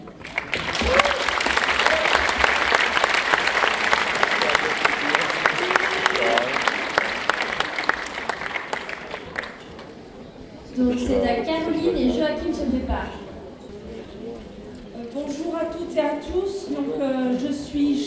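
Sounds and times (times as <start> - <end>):
audience at a general assembly applauding: 0.0 - 10.0
faint voices: 0.0 - 18.0.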